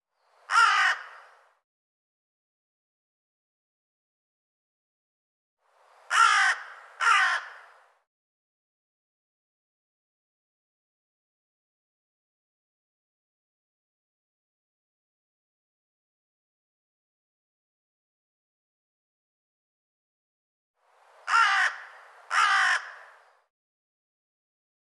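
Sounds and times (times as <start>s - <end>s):
harsh raspy bird caw: 0.5s - 1.4s, 6.1s - 7.8s, 21.3s - 23.5s.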